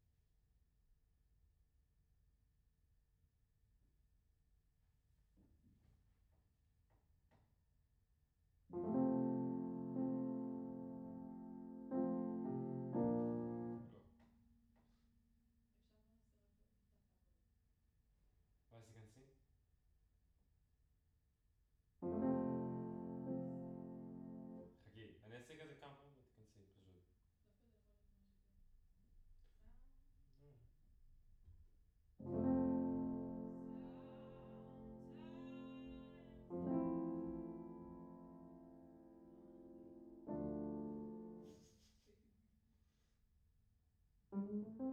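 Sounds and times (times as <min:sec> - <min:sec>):
piano in a room: 0:08.7 - 0:14.1, 0:22.0 - 0:24.8, 0:32.2 - 0:42.0, 0:44.3 - 0:44.9.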